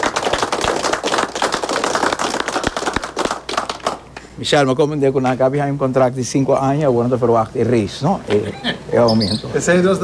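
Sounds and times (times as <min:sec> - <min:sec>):
audience applause: 0:00.0 - 0:04.1
speech: 0:04.4 - 0:10.0.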